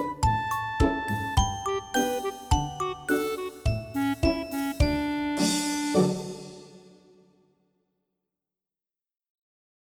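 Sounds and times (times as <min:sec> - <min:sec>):
melody: 0:00.2 - 0:06.8.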